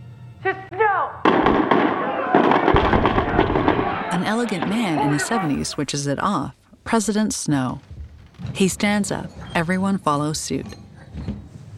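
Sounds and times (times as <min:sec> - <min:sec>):
gunshots in the film The Hunger Games Mockingjay Part 2: 0:01.2 - 0:05.5
speech: 0:04.3 - 0:07.9, 0:08.5 - 0:11.3.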